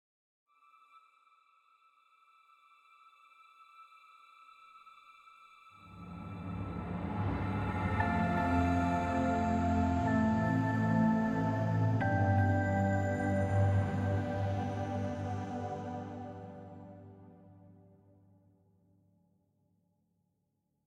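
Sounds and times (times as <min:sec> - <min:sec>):
musical stinger: 0:05.9 - 0:17.3.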